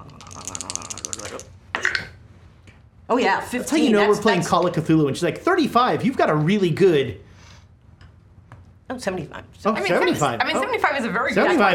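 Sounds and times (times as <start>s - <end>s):
plastic dice rattling and rolling: 0.4s - 1.5s
speech: 3.1s - 7.2s, 9.0s - 11.7s.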